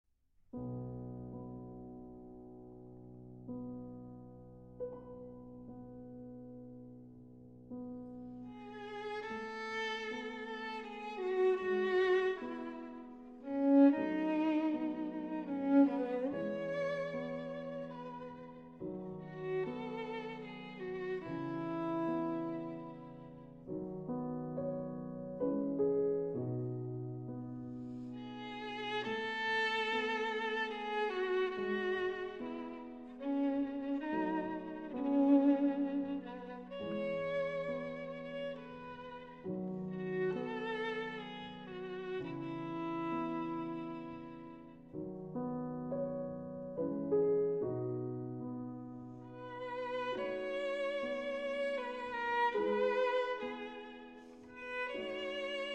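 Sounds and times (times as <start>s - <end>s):
piano: 0.5s - 55.7s
violin: 3.4s - 55.7s.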